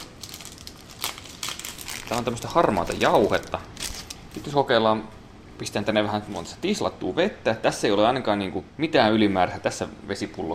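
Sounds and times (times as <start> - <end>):
crinkly plastic pouch being opened: 0.0 - 4.5
speech: 2.1 - 3.7, 4.4 - 10.5.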